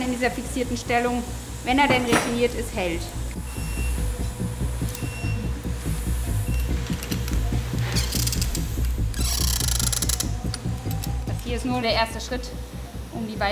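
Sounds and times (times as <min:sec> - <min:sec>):
brief hissing bursts: 0:00.0 - 0:11.9
speech: 0:00.2 - 0:03.2, 0:11.5 - 0:13.5
mechanical whirring and ratcheting attaching an external fixator frame during surgery: 0:03.2 - 0:11.7.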